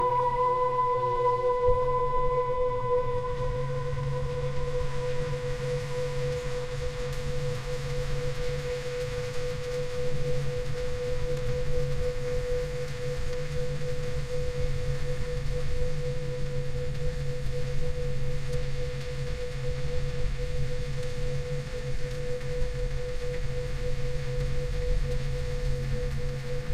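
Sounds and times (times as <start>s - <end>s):
ambient meditation music: 0.0s - 26.7s.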